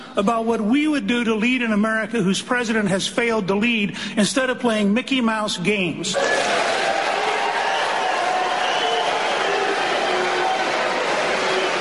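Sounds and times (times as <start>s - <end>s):
speech: 0.2s - 6.9s
large audience applauding at a debate: 6.2s - 11.7s.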